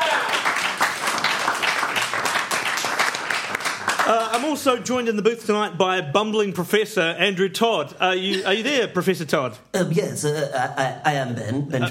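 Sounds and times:
audience applause: 0.0s - 4.7s
speech: 4.1s - 11.9s.

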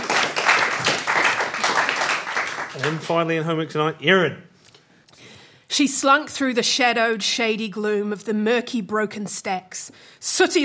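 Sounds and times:
round of applause: 0.0s - 3.4s
speech: 2.8s - 4.5s, 5.7s - 10.6s.

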